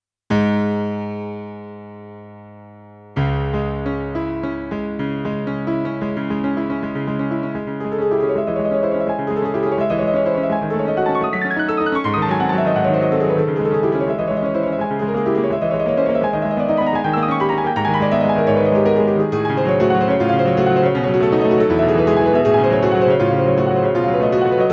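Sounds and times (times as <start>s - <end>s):
Roland SK-88Pro piano: 0.3s - 24.7s.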